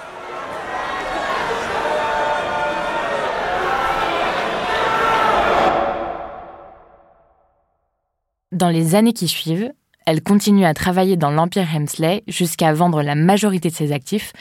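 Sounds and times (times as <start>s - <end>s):
crowd booing: 0.0s - 7.2s
speech: 8.6s - 14.3s.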